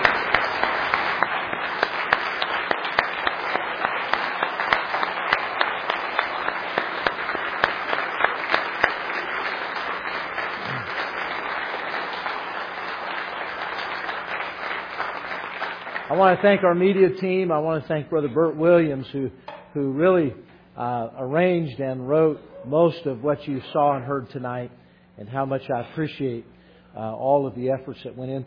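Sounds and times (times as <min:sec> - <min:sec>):
audience applause for a choir: 0:00.0 - 0:16.6
speech: 0:16.2 - 0:28.4.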